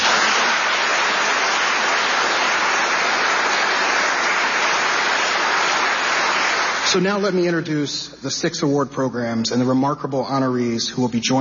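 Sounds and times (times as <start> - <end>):
audience clapping: 0.0 - 7.6
speech: 7.0 - 11.3.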